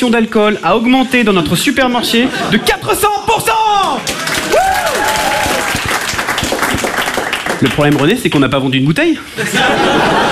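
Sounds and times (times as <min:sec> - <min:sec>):
speech: 0:00.0 - 0:04.6, 0:07.6 - 0:10.3
laughter: 0:01.7 - 0:03.3, 0:09.3 - 0:10.3
audience applauding: 0:03.9 - 0:08.7.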